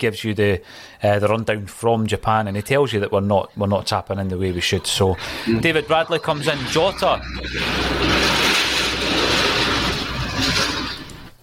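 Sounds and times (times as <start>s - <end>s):
speech: 0.0s - 8.4s
jet plane passing overhead: 5.2s - 11.2s.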